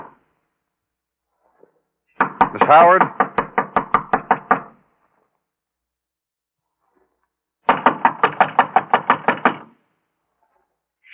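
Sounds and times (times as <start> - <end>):
police knocking on a door: 2.2 - 4.7, 7.7 - 9.7
speech: 2.7 - 3.2.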